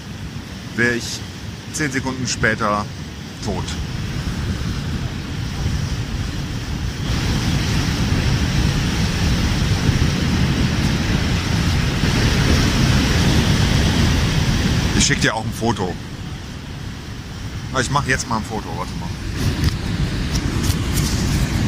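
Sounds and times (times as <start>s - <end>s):
rushing water of Niagara Falls: 0.0s - 21.6s
speech: 0.8s - 4.0s, 15.1s - 16.2s, 17.8s - 19.7s.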